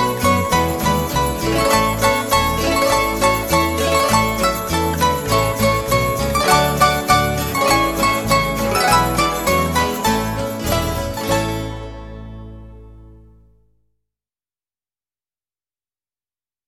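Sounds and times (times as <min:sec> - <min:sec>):
harp: 0:00.0 - 0:13.3.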